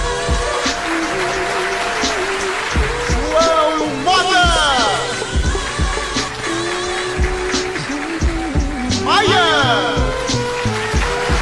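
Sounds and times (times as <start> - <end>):
audience applause: 0.0 - 11.4.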